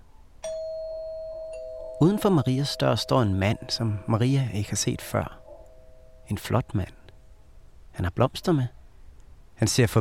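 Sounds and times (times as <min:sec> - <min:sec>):
doorbell ringing: 0:00.4 - 0:06.6
speech: 0:02.0 - 0:05.4, 0:06.3 - 0:07.0, 0:08.0 - 0:08.8, 0:09.6 - 0:09.9.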